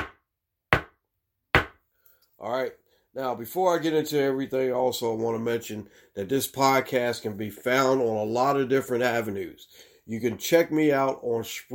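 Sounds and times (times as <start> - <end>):
gavel striking with sharp wooden cracks: 0.0 - 1.8
speech: 2.4 - 11.7.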